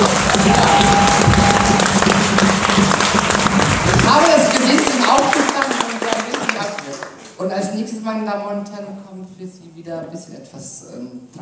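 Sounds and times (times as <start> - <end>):
audience applause: 0.0 - 7.3
speech: 8.2 - 11.3.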